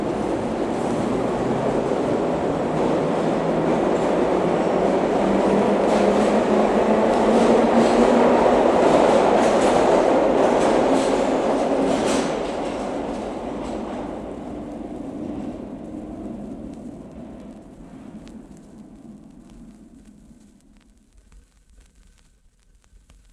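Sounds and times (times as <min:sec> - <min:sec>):
1938 Stock Tube train doors closing: 0:00.0 - 0:14.4
1938 Stock Tube train departing: 0:00.0 - 0:20.6.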